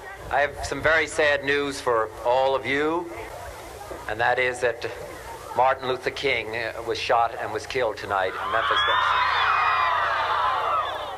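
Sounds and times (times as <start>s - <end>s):
speech: 0.3s - 3.3s, 4.0s - 9.6s
crowd crying out in dismay: 8.3s - 11.1s.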